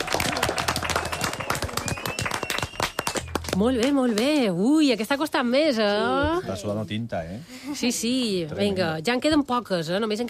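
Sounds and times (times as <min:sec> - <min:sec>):
loud applause: 0:00.0 - 0:03.6
speech: 0:03.6 - 0:10.2.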